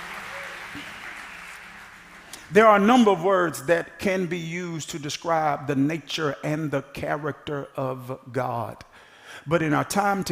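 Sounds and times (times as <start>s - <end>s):
audience clapping hands: 0.0s - 3.1s
speech: 2.5s - 10.3s.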